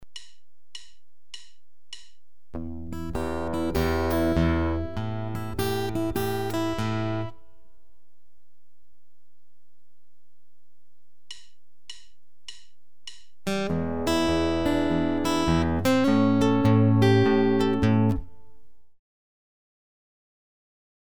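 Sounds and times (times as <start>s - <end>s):
guitar playing repeated motifs at same and different pitches: 2.6s - 7.5s, 13.4s - 18.8s.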